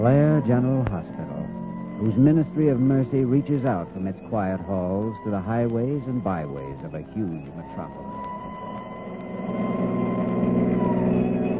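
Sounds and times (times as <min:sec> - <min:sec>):
speech: 0:00.0 - 0:08.2
ambulance engine driving: 0:00.0 - 0:11.5.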